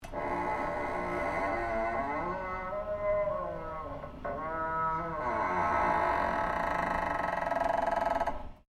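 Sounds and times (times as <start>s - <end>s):
heavy fire escape door creaking: 0.0s - 8.6s.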